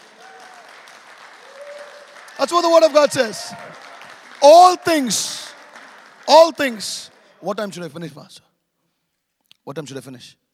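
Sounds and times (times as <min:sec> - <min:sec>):
hand clapping: 0:00.0 - 0:07.2
speech: 0:02.4 - 0:03.8, 0:04.4 - 0:05.5, 0:06.3 - 0:08.5, 0:09.6 - 0:10.4.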